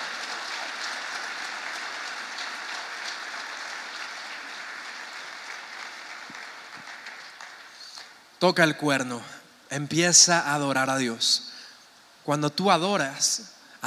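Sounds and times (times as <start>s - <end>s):
audience applauding: 0.0s - 8.2s
speech: 8.4s - 11.5s, 12.2s - 13.8s.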